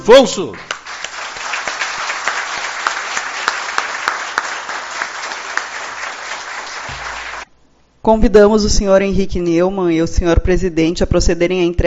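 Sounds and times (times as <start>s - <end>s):
speech: 0.0s - 0.7s, 8.0s - 11.8s
audience applause: 0.6s - 7.5s.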